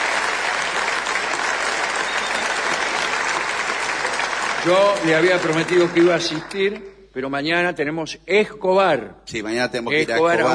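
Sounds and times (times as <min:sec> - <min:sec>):
audience applause: 0:00.0 - 0:06.8
speech: 0:04.6 - 0:10.5.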